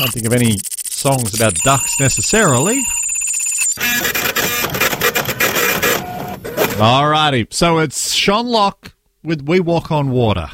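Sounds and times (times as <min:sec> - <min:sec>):
speech: 0:00.0 - 0:03.0, 0:06.8 - 0:10.5
high electronic tone: 0:00.0 - 0:04.6
small printer printing out a note: 0:03.8 - 0:06.8.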